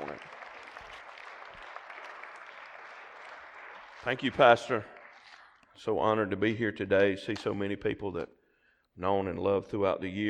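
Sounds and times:
audience clapping: 0.0 - 5.8
speech: 4.0 - 4.9, 5.8 - 8.4, 9.0 - 10.2.

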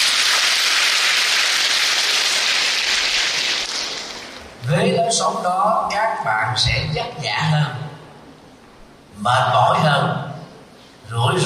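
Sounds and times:
loud crowd applause: 0.0 - 4.6
speech: 5.1 - 7.8, 9.2 - 10.2, 11.1 - 11.4.

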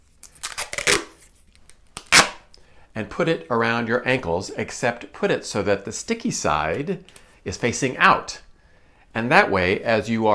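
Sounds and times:
duct tape torn off the roll: 0.0 - 2.5
speech: 3.0 - 8.4, 9.2 - 10.3.

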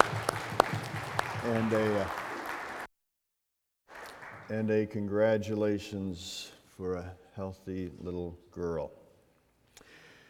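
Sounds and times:
church congregation applauding a family: 0.0 - 2.9, 3.9 - 4.8
speech: 1.5 - 2.2, 4.5 - 9.0.

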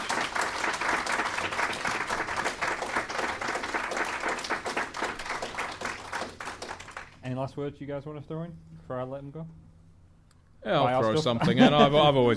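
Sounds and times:
audience applause: 0.0 - 7.2
speech: 7.3 - 9.6, 10.6 - 12.3
laughter: 11.1 - 12.3.

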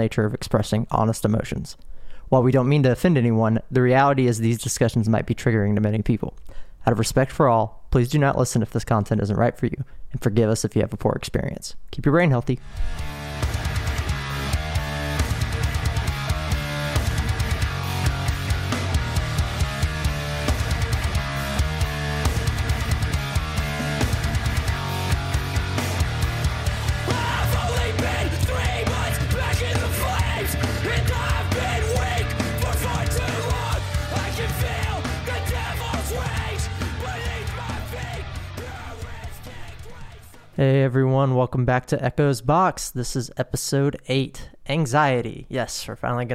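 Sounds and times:
speech: 0.0 - 13.8, 41.6 - 46.3
hardcore punk song with drums distorted guitars and shouted vocals: 12.6 - 40.8.

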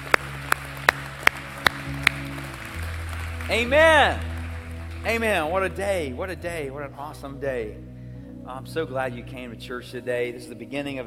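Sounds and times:
audience clapping: 0.0 - 6.1
speech: 3.5 - 4.3, 5.0 - 7.9, 8.5 - 11.0.

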